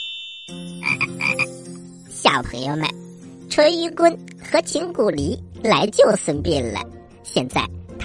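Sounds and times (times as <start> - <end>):
frog croaking: 0.8 - 1.5
speech: 2.6 - 3.0, 3.6 - 7.8.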